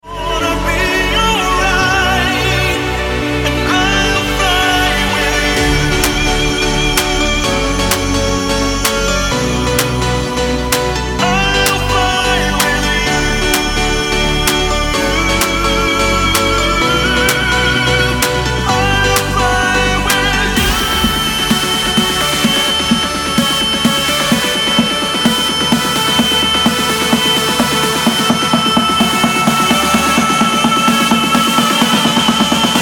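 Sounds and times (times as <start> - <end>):
melodic techno music: 0.1 - 32.8.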